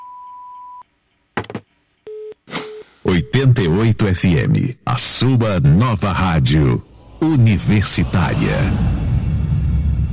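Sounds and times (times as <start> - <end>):
voicemail recording beep: 0.0 - 0.8
speech: 3.0 - 9.1.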